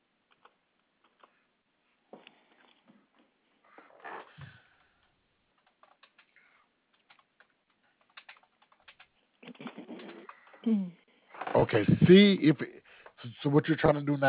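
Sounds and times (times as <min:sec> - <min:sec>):
typing credit card details on a computer keyboard: 0:05.0 - 0:10.6
speech: 0:10.7 - 0:11.0, 0:11.7 - 0:14.2.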